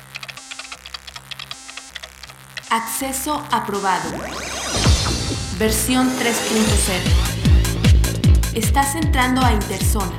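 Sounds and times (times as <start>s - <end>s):
password typed on a computer keyboard: 0.0s - 2.8s
speech: 2.7s - 7.3s, 8.5s - 10.1s
low pulsing electronic drone: 3.9s - 10.1s.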